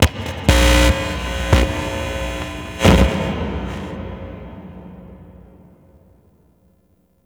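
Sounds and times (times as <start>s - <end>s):
stage amplifier: 0.0s - 5.7s.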